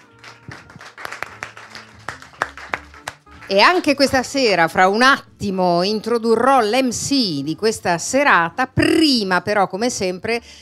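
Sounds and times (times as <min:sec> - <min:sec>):
small audience applauding: 0:00.0 - 0:03.5
speech: 0:03.5 - 0:10.5.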